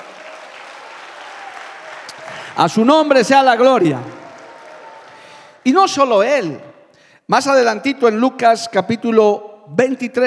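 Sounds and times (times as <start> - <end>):
audience applauding: 0.0 - 5.7
speech: 2.6 - 4.2, 5.6 - 6.7, 7.3 - 10.2.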